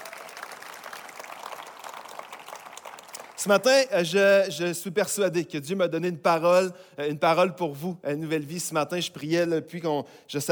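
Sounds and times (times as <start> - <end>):
audience applauding: 0.0 - 3.7
speech: 3.4 - 10.4.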